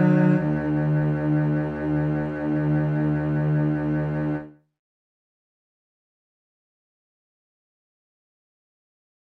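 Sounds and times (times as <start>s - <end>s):
strings: 0.0s - 4.6s.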